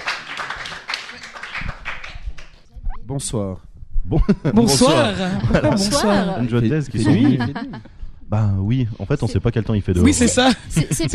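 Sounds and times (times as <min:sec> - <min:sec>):
crowd applauding: 0:00.0 - 0:02.6
speech: 0:03.1 - 0:11.1
laughter: 0:04.1 - 0:07.9, 0:10.0 - 0:11.1.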